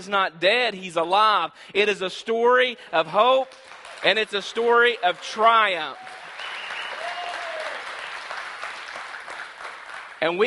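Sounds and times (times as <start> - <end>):
speech: 0.0 - 6.2, 10.2 - 10.4
audience applauding: 3.5 - 10.4.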